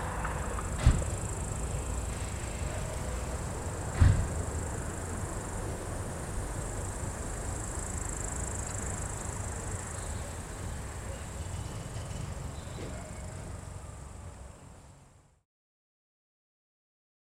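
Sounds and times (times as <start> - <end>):
daytime street ambience on Uyezdnaya in Sergiyev Posad: 0.0 - 15.4.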